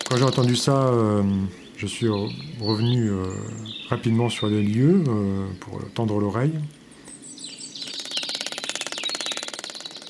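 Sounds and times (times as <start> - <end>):
spiders drumming on dead leaves: 0.0 - 1.2, 7.8 - 10.0
speech: 0.1 - 6.8.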